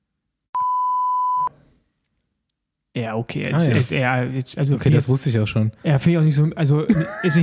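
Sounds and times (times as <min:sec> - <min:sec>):
censor beep over a name: 0:00.6 - 0:01.5
speech: 0:03.0 - 0:07.4
laughter: 0:03.6 - 0:04.0, 0:06.9 - 0:07.4.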